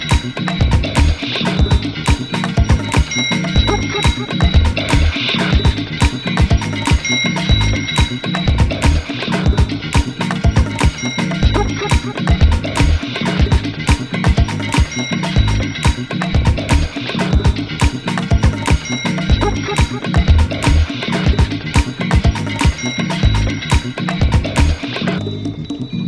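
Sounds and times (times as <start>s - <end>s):
drum sounds: 0.0s - 25.9s.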